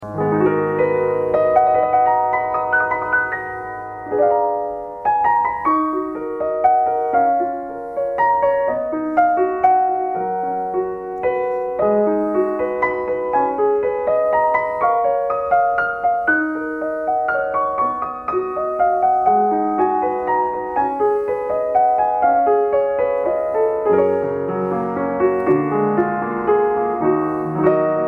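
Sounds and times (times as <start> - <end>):
Bechstein Academy A116 piano: 0.0 - 28.0.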